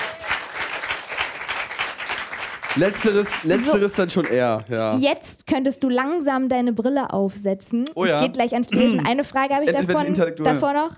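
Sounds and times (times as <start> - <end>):
audience clapping: 0.0 - 4.9
speech: 2.8 - 10.9.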